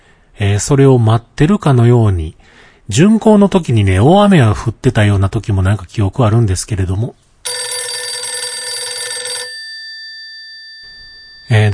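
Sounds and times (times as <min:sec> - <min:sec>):
speech: 0:00.4 - 0:07.2, 0:11.5 - 0:11.7
telephone ringing with electronic bell tone: 0:07.4 - 0:11.7.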